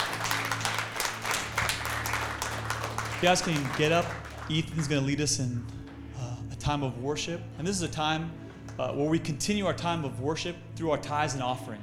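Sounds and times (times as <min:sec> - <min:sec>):
audience clapping: 0:00.0 - 0:06.1
speech: 0:03.2 - 0:05.8, 0:06.6 - 0:11.8.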